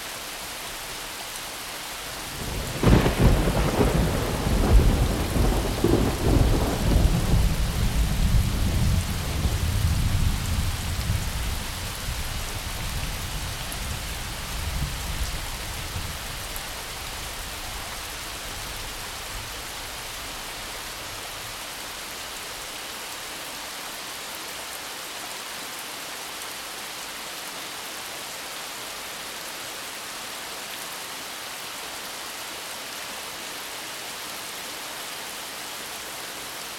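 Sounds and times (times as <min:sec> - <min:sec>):
thunderstorm: 0:02.2 - 0:16.4.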